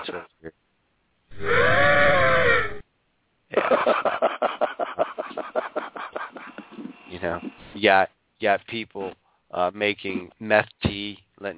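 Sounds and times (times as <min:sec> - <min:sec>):
person imitating an elephant trumpet call: 0:01.3 - 0:02.8
laughter: 0:03.5 - 0:07.0
speech: 0:07.8 - 0:11.5.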